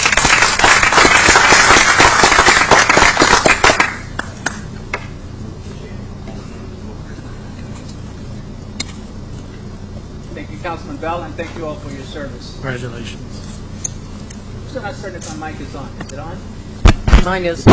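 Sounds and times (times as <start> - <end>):
audience applause: 0.0 - 4.6
speech: 10.7 - 13.5, 14.8 - 16.6, 17.2 - 17.7.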